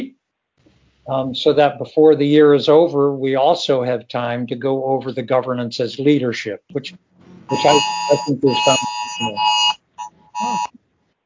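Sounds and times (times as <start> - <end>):
speech: 1.0 - 9.6
Amber Alert tone on a phone: 7.4 - 10.7.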